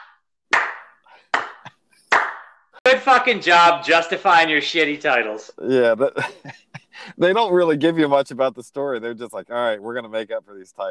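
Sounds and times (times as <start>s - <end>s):
slow clap: 0.0s - 2.7s
speech: 2.9s - 10.8s
laughter: 5.7s - 7.4s.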